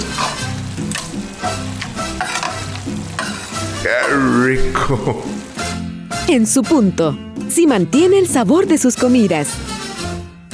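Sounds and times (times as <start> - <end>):
gallo pinto sizzling and crackling in hot oil: 0.0 - 5.9
speech: 4.0 - 5.4, 6.3 - 9.7.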